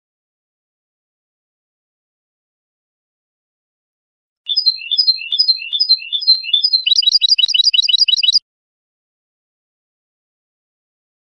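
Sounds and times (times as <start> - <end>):
European goldfinch song: 4.5 - 8.4.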